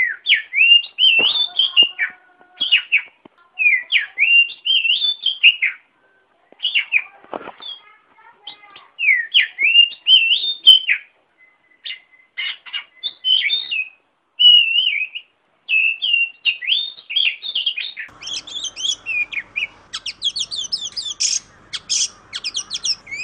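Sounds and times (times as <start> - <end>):
Oriental magpie-robin singing rich whistled song in ngeplong style: 0.0 - 1.8, 3.7 - 5.8, 9.0 - 23.2.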